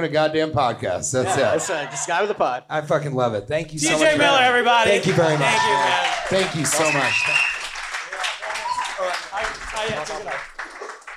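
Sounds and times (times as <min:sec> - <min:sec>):
speech: 0:00.0 - 0:07.5
audience applause at Stand Up New York Comedy Club: 0:05.1 - 0:11.1.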